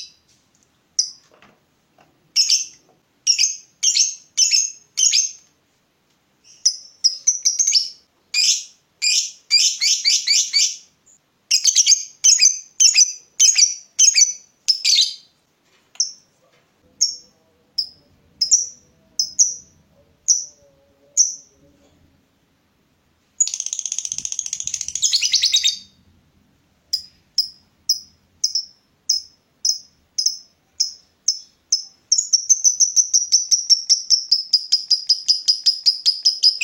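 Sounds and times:
lovebird chirping: 2.4s - 5.4s, 6.4s - 15.4s, 16.0s - 21.7s, 23.4s - 26.1s, 26.9s - 36.6s.

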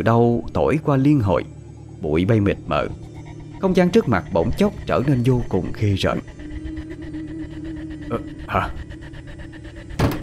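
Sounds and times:
speech: 0.0s - 6.4s, 8.1s - 8.8s
rhythmic rumble: 0.0s - 10.2s
door slamming: 10.0s - 10.2s.

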